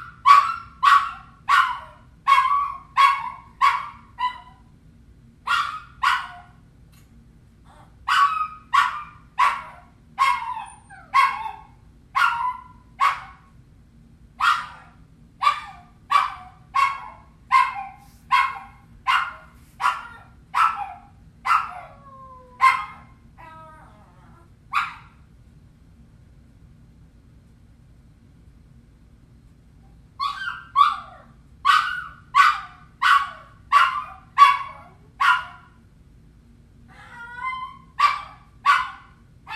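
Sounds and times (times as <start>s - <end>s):
hunting dog barking: 0.0s - 4.6s, 5.5s - 6.6s, 8.1s - 13.5s, 14.4s - 22.0s, 22.6s - 23.2s, 24.7s - 25.2s, 30.2s - 35.8s, 38.0s - 39.5s
hunting dog whining: 10.3s - 11.6s, 21.7s - 24.5s, 36.9s - 38.0s.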